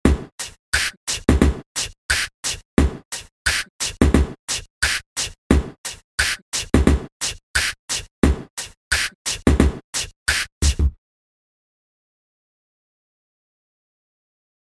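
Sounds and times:
hip hop karaoke instrumental: 0:00.1 - 0:10.9.

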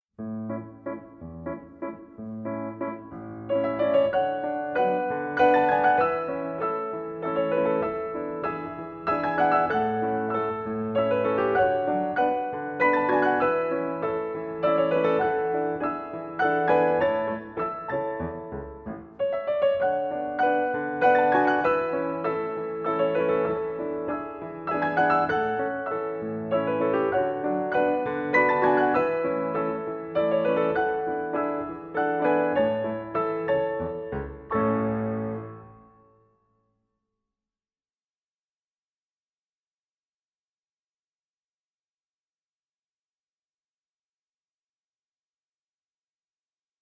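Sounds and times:
sentimental waltz: 0:00.2 - 0:35.9.

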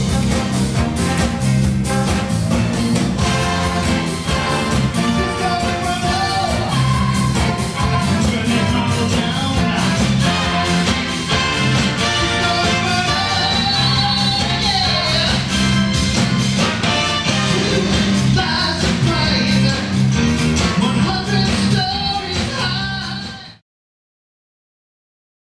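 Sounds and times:
R&B music: 0:00.0 - 0:23.6.

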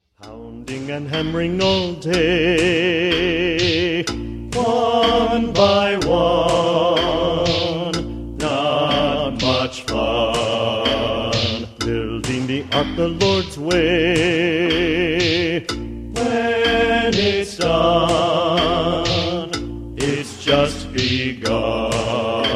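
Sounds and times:
pounding and hammering: 0:00.7 - 0:22.5.

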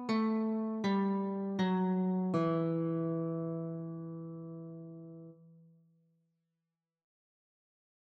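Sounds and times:
guitar notes: 0:00.0 - 0:05.6.

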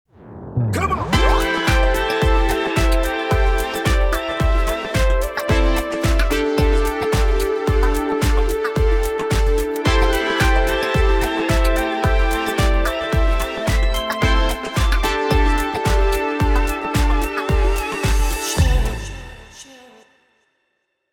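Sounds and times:
music loop: 0:00.8 - 0:19.0.

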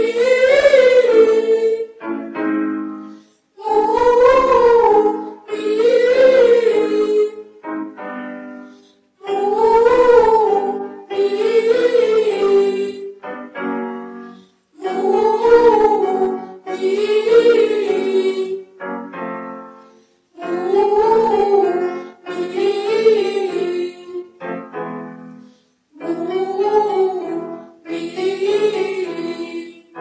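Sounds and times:
vocal exercises: 0:00.0 - 0:02.0, 0:03.0 - 0:07.4, 0:08.7 - 0:13.2, 0:14.2 - 0:18.7, 0:20.4 - 0:24.4, 0:26.0 - 0:29.7.

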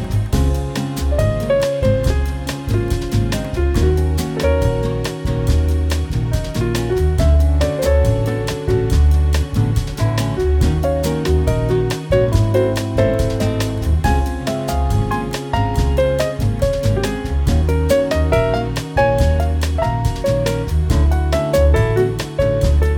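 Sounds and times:
jazz lounge elevator hold music: 0:00.0 - 0:22.9.

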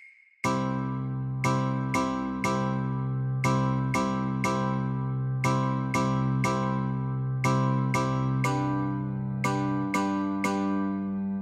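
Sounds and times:
guitar chords: 0:00.5 - 0:11.4.

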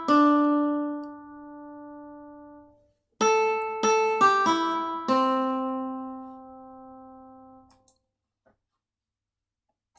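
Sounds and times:
melody practice: 0:00.0 - 0:07.7.

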